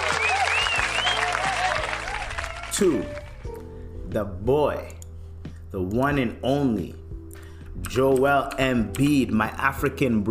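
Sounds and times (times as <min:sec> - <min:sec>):
round of applause: 0:00.0 - 0:03.4
speech: 0:02.8 - 0:03.2, 0:04.1 - 0:05.0, 0:05.7 - 0:07.0, 0:07.8 - 0:10.3.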